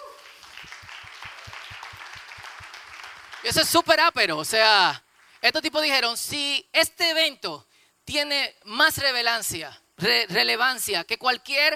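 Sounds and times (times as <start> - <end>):
audience applause: 0.0 - 3.8
speech: 3.4 - 11.7.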